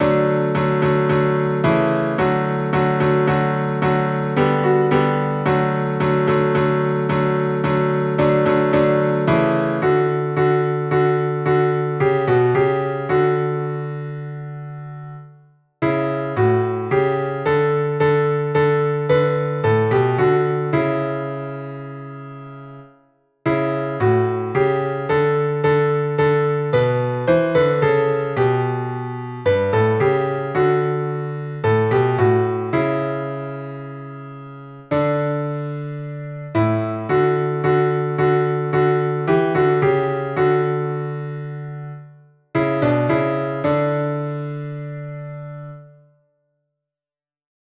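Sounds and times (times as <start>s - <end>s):
piano: 0.0s - 46.4s.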